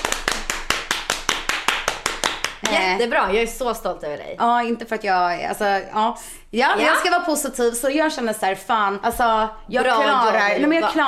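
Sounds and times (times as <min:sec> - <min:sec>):
hand clapping applause: 0:00.0 - 0:03.0
speech: 0:02.7 - 0:11.0.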